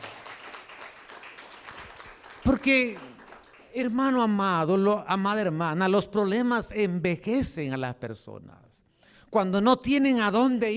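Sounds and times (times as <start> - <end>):
audience applause: 0.0 - 3.9
speech: 2.4 - 3.1, 3.7 - 8.6, 9.3 - 10.7.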